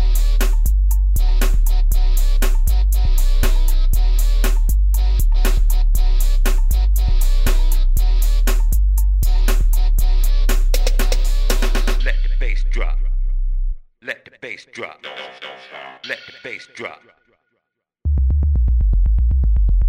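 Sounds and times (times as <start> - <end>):
bass drop in music: 0.0 - 13.8, 18.1 - 19.8.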